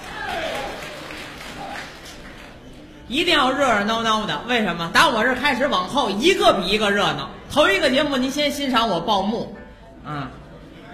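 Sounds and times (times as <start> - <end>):
sparse audience applause: 0.0 - 2.9
speech: 3.1 - 10.4.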